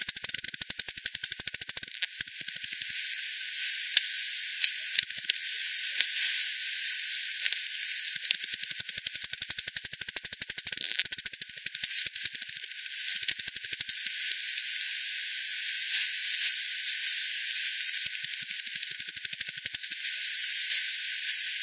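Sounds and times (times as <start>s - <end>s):
bat echolocation calls: 0.0s - 3.2s, 5.0s - 5.4s, 7.1s - 14.7s, 17.5s - 20.2s
steady hiss: 2.2s - 9.5s, 11.3s - 21.6s.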